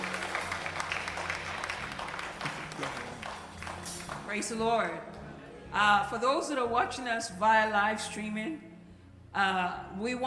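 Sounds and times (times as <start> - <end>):
audience applause: 0.0 - 4.3
speech: 4.3 - 8.7, 9.3 - 10.2.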